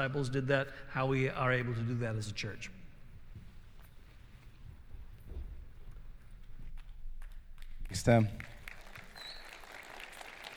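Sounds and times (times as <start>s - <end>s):
speech: 0.0s - 2.8s, 7.9s - 8.5s
audience clapping: 6.8s - 10.5s.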